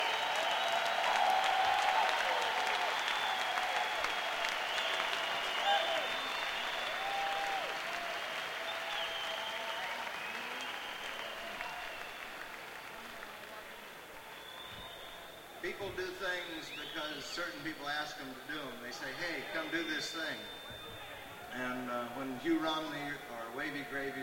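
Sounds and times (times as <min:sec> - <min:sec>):
audience applause for an event organizer: 0:00.0 - 0:15.6
crowd noise: 0:00.0 - 0:24.2
speech: 0:21.6 - 0:24.2.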